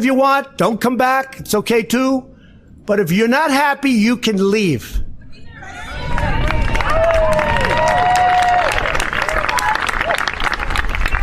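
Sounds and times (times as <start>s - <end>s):
speech: 0.0s - 2.3s, 2.9s - 5.1s
White House staffers applauding outdoors in front of the White House: 5.9s - 11.2s.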